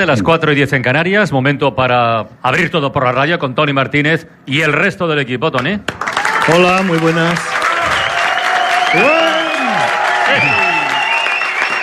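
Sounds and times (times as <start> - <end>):
speech: 0.0 - 7.6, 8.9 - 9.2
studio audience clapping at a live radio show in Valencia: 5.6 - 11.8
audience whoops and whistles: 7.9 - 11.8.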